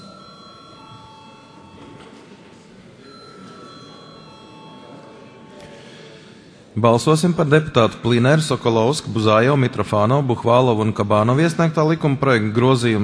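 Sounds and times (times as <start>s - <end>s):
parliament voting bell ringing: 0.0s - 5.6s
low murmur of voices: 0.0s - 13.0s
speech: 6.8s - 13.0s.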